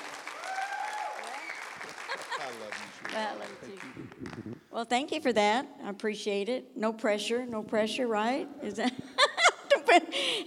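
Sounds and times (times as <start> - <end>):
audience cheering: 0.0 - 4.0
audience clapping welcoming a woman to speak: 0.0 - 4.6
laughter: 1.8 - 3.1
speech: 2.5 - 9.2, 9.9 - 10.4.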